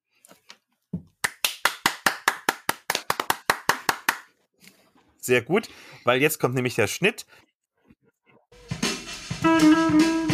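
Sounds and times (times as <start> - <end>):
loud hand claps: 1.2 - 4.3
speech: 5.3 - 7.5, 9.5 - 10.1.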